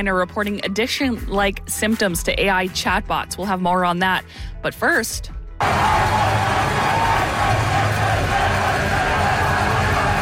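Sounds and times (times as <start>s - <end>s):
speech: 0.0s - 6.3s
crowd cheering as the Niverville Nighthawks win the Centennial Cup: 5.6s - 10.2s.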